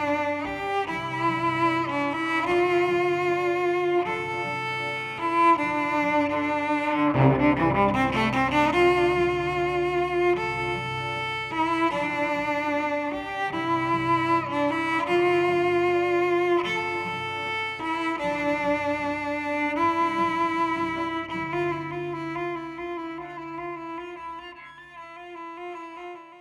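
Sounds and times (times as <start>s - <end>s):
processed cello: 0.0s - 26.4s.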